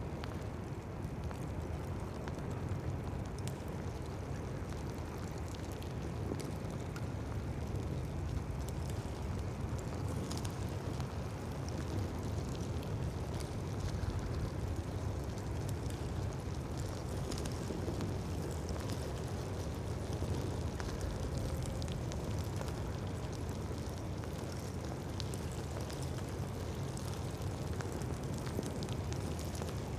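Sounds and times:
lava: 0:00.0 - 0:29.9.

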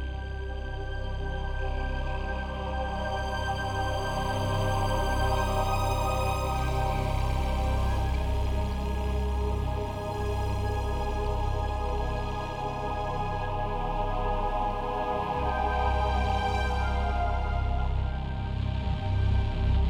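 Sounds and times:
mysterious music loop: 0:00.2 - 0:19.8.

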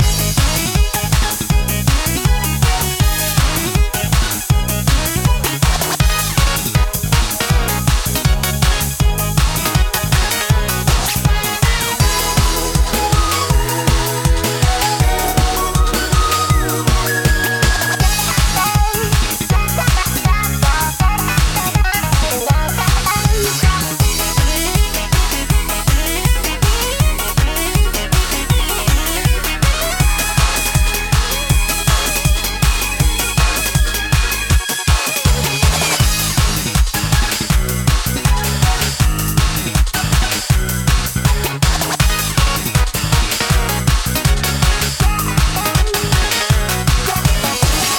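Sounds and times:
kart racing game music main loop: 0:00.0 - 0:47.9.

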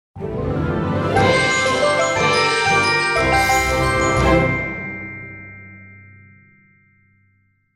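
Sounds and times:
fanfare: 0:00.2 - 0:05.6.

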